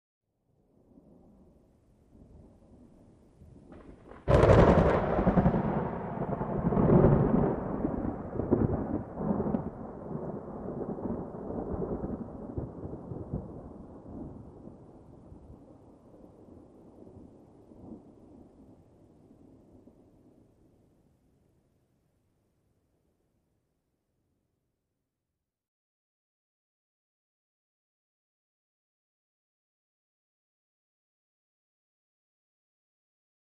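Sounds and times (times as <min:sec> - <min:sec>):
lightning strike: 0:03.7 - 0:13.4.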